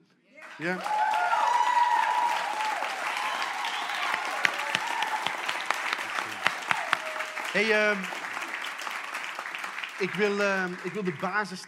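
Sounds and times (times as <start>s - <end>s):
faint cheers: 0.4s - 8.2s
audience applause: 0.4s - 11.6s
speech: 0.6s - 1.0s, 7.6s - 8.2s, 10.0s - 11.6s.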